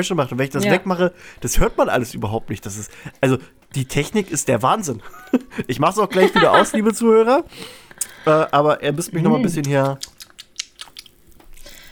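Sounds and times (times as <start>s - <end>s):
speech: 0.0s - 10.1s
laughter: 5.0s - 7.2s
person smacking while eating: 9.6s - 11.8s.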